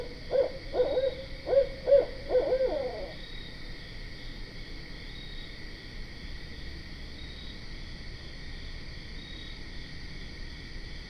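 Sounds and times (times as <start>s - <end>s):
barred owl chorus hooting and cackling: 0.0s - 3.2s.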